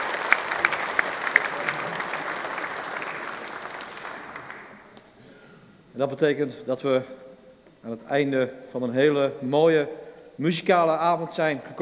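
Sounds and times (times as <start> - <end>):
audience applause: 0.0 - 5.0
speech: 6.0 - 11.8.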